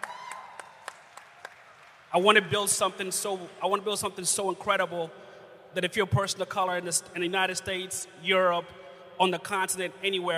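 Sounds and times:
audience applause: 0.0s - 2.1s
speech: 2.1s - 10.3s.

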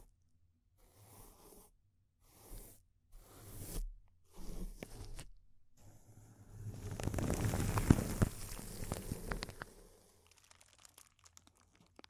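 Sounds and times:
intense close-up crinkling: 6.6s - 12.0s.

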